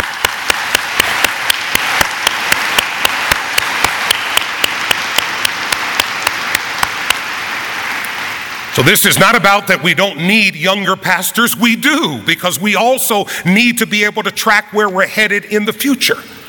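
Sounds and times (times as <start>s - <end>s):
audience applause: 0.0s - 9.0s
speech: 8.8s - 16.3s.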